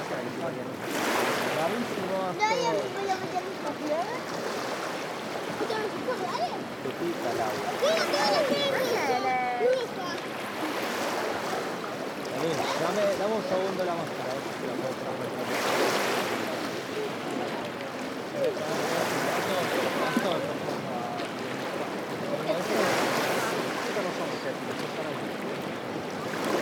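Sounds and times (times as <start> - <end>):
light waves of the Mediterranean Sea on a small beach: 0.0 - 26.6
people on a small Mediterranean beach: 0.0 - 26.6
kids on a small Mediterranean beach: 2.2 - 4.8, 5.4 - 10.8.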